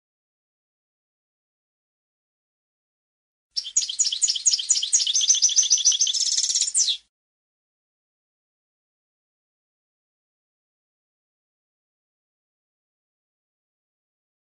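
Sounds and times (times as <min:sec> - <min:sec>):
European goldfinch song of tinkling twitter: 0:03.6 - 0:07.0.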